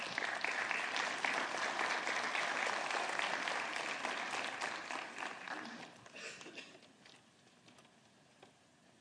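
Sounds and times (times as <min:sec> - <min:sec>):
crowd applause: 0:00.0 - 0:06.6.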